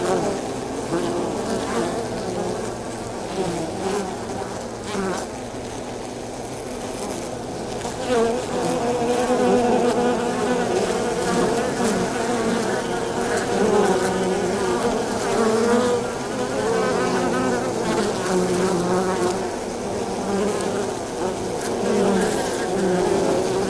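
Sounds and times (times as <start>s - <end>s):
bees buzzing at the entrance of a hive: 0.0s - 23.6s.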